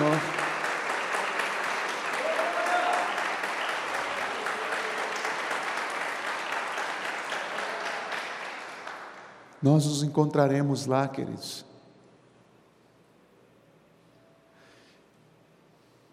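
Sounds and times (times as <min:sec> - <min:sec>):
audience applause: 0:00.0 - 0:09.5
speech: 0:09.6 - 0:11.7.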